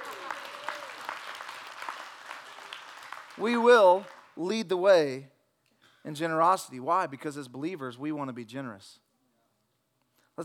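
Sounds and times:
audience clapping: 0:00.0 - 0:04.4
speech: 0:03.4 - 0:05.3, 0:06.0 - 0:09.0.

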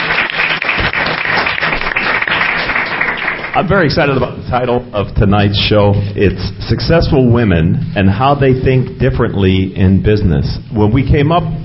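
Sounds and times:
audience round of applause: 0:00.0 - 0:03.8
speech: 0:03.6 - 0:11.6.

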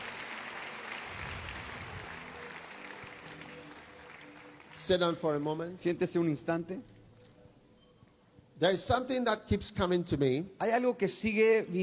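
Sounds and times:
audience clapping: 0:00.0 - 0:05.9
speech: 0:04.8 - 0:07.0, 0:08.6 - 0:11.8.

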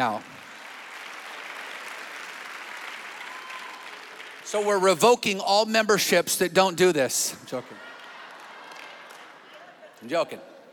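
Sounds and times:
speech: 0:00.0 - 0:00.3, 0:04.5 - 0:07.9, 0:10.0 - 0:10.5
people clapping: 0:00.0 - 0:05.0, 0:07.5 - 0:10.0.

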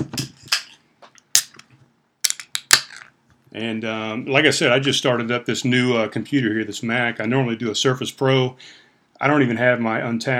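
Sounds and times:
beer being opened: 0:00.5 - 0:01.6, 0:02.3 - 0:03.1
speech: 0:03.6 - 0:10.3.

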